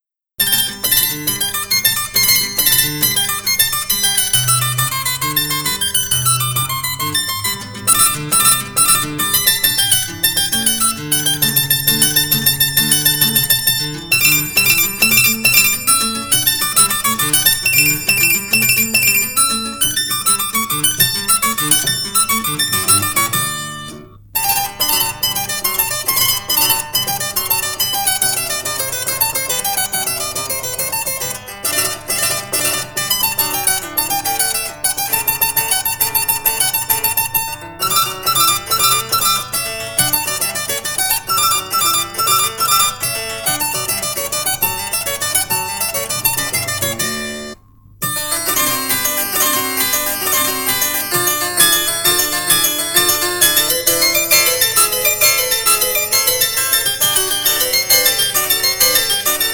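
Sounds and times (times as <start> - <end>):
harpsichord sonata in G major: 0.4 - 59.5.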